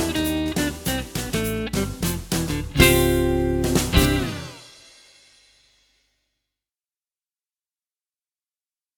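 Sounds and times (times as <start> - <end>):
swing music: 0.0 - 4.8.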